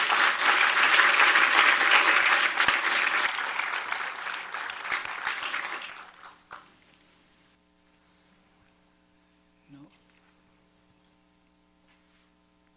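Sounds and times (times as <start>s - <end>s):
audience applause: 0.0s - 6.8s.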